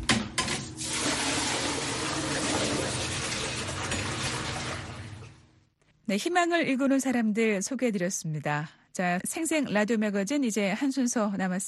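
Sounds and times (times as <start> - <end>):
running water: 0.8 - 5.5
speech: 6.1 - 11.6.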